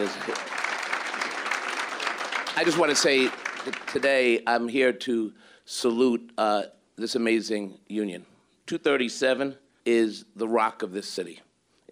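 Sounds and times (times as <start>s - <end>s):
speech: 0.0s - 0.6s, 2.6s - 11.8s
audience applause at a union gathering: 0.0s - 4.3s.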